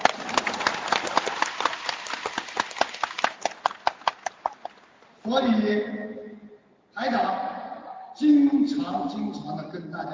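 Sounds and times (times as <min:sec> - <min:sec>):
audience applause: 0:00.0 - 0:04.8
speech: 0:05.2 - 0:06.2, 0:07.0 - 0:07.4, 0:08.2 - 0:10.1.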